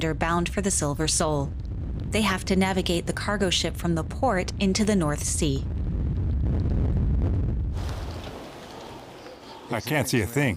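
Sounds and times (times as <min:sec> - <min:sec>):
speech: 0:00.0 - 0:05.7, 0:09.7 - 0:10.5
storm-force wind gusts: 0:00.0 - 0:09.5.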